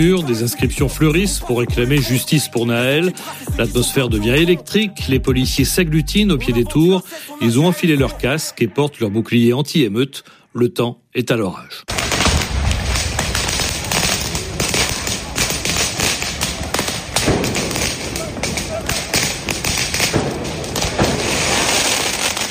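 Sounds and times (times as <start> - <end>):
speech: 0.0 - 12.0
firework mortar shots: 11.9 - 22.5.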